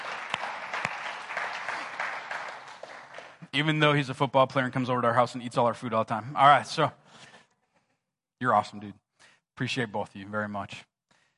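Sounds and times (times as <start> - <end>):
audience applause: 0.0 - 3.5
speech: 3.6 - 7.3, 8.4 - 9.0, 9.6 - 10.9.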